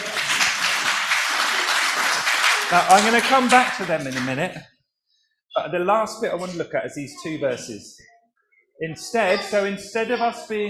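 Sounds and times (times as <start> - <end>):
crowd clapping: 0.0 - 4.6
speech: 2.7 - 4.7, 5.6 - 8.1, 8.8 - 10.6.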